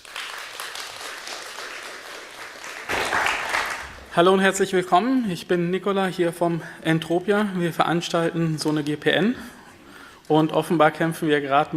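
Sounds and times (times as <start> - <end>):
audience applause: 0.0 - 4.2
speech: 4.2 - 9.6, 10.3 - 11.7.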